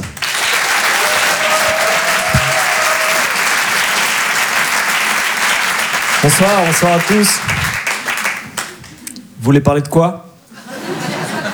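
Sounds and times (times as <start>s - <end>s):
theatre audience applauding at a comedy show in Paris: 0.0s - 9.1s
speech: 6.3s - 7.7s, 9.4s - 10.2s
laughter: 10.5s - 11.5s.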